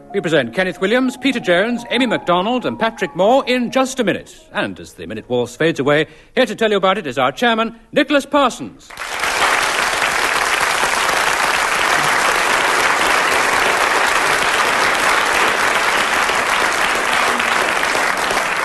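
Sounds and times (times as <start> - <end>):
speech: 0.1 - 9.2
studio audience applause welcoming a comedy panel game show: 8.9 - 18.6.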